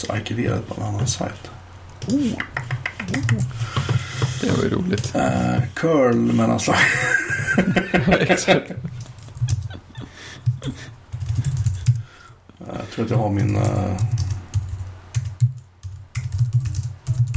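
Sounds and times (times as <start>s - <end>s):
speech: 0.0s - 3.8s, 4.4s - 9.0s, 13.0s - 14.2s
rapid computer keyboard typing: 2.0s - 6.4s, 8.9s - 12.1s, 13.1s - 17.3s
laughter: 6.7s - 11.6s.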